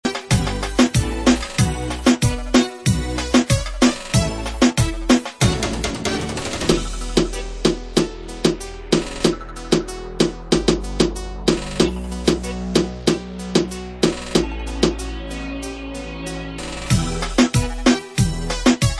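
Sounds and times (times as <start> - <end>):
reggaeton beat: 0.0 - 18.9.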